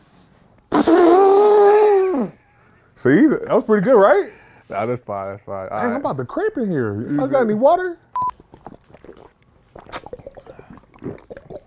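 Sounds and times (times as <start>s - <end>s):
person imitating an elephant's trumpet: 0.7s - 2.4s
speech: 3.0s - 8.0s.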